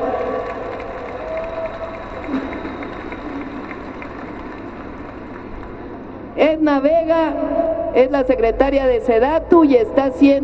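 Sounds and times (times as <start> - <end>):
faint voices and cheers: 0.0 - 5.9
audience applause: 0.0 - 6.0
speech: 6.4 - 10.4.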